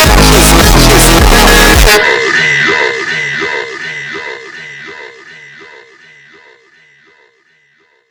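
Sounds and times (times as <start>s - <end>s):
funk music: 0.0s - 2.7s.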